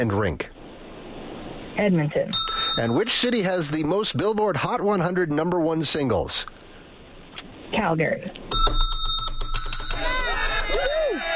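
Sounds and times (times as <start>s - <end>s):
speech: 0.0s - 0.6s, 1.8s - 6.6s, 7.7s - 8.7s
emphatic bell ring sound effect: 2.3s - 3.2s, 8.5s - 11.2s.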